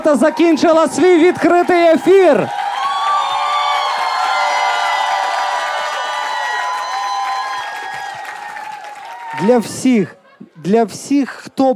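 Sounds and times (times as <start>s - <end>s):
speech: 0.0s - 2.6s, 9.4s - 11.7s
applause: 0.5s - 9.9s.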